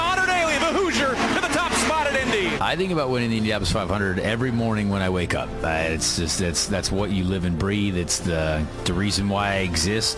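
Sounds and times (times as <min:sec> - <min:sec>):
race crowd cheering: 0:00.0 - 0:02.8
speech: 0:02.6 - 0:10.1.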